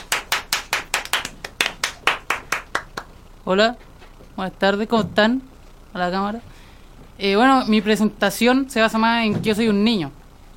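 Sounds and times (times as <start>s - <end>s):
audience applause: 0.0s - 3.1s
speech: 3.5s - 6.5s, 7.2s - 10.2s.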